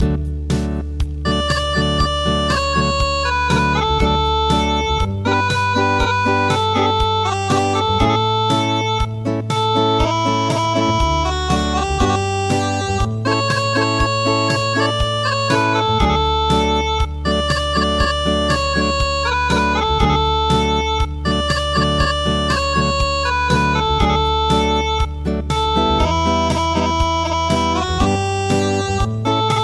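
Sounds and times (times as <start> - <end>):
acoustic midi music: 0.0 - 29.6.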